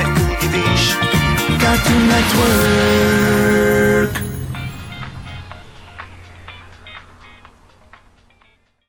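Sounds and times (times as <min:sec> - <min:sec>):
singing: 0:00.0 - 0:04.2.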